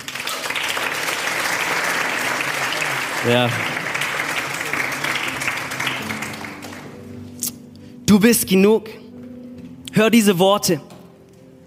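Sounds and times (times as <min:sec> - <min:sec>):
audience applause: 0:00.0 - 0:07.2
speech: 0:03.2 - 0:03.7, 0:08.1 - 0:09.0, 0:10.0 - 0:10.9.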